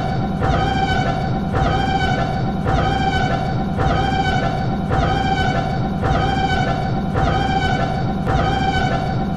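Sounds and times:
siren alarm: 0.0 - 9.3.

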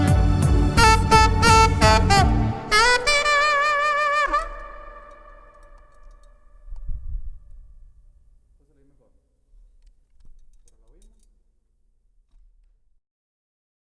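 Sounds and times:
saxophone cover: 0.0 - 6.9.

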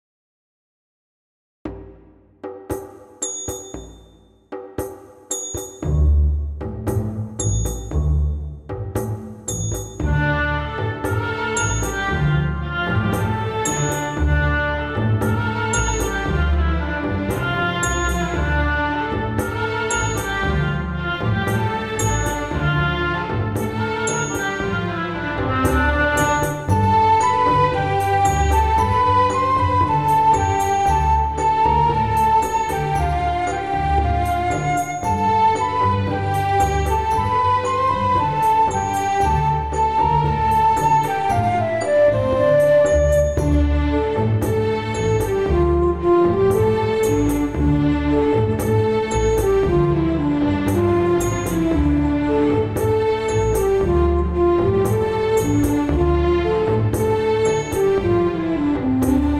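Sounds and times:
Arabic dance medieval music after a Spanish cantiga: 1.7 - 59.3.

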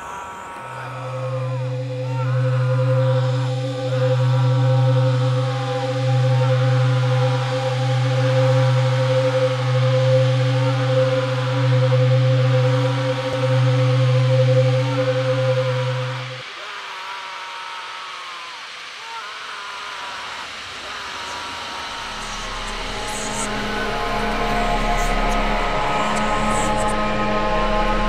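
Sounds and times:
scary forest ambience: 0.0 - 28.0.

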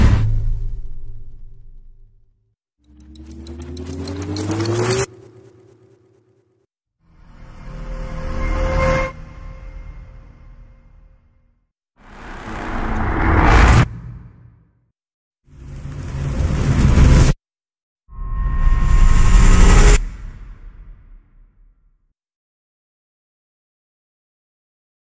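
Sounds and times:
cinematic riser: 2.9 - 11.1, 12.0 - 14.6, 15.5 - 17.4, 18.1 - 21.2.

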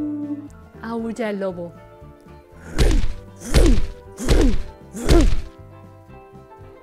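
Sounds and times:
speech: 0.9 - 1.8
footsteps: 2.6 - 5.5.

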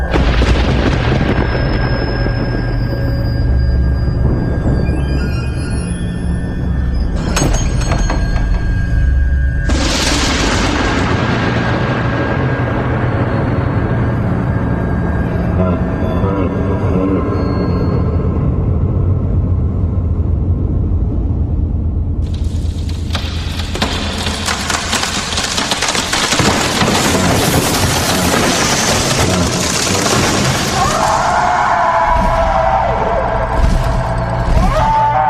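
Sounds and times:
terror sounds in a forest: 0.0 - 35.2.

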